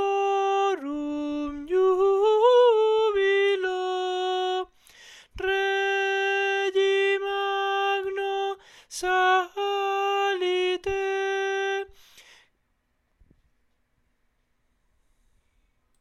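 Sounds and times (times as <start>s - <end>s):
contraltos singing sacred music: 0.0s - 11.9s.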